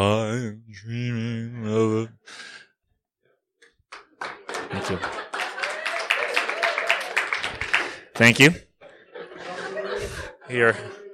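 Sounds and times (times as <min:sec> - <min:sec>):
speech: 0:00.0 - 0:01.0, 0:08.2 - 0:08.7, 0:10.5 - 0:11.0
audience applause: 0:03.9 - 0:08.6
laughter: 0:04.2 - 0:11.1.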